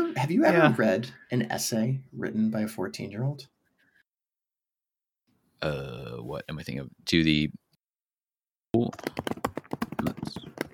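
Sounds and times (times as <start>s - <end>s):
speech: 0.2s - 3.5s, 5.6s - 7.6s, 8.7s - 10.4s
typing on a computer keyboard: 8.8s - 10.7s.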